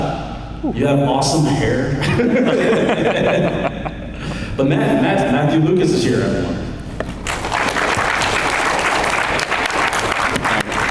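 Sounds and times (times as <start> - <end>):
laughter: 0.0 - 6.2, 6.8 - 10.8
speech: 0.6 - 6.7
audience round of applause: 6.8 - 10.8.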